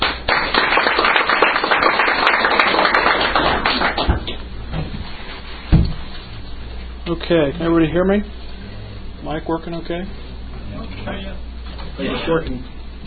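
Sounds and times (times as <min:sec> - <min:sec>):
audience clapping welcoming a guest speaker: 0:00.0 - 0:04.4
speech: 0:07.2 - 0:08.4, 0:09.2 - 0:12.7.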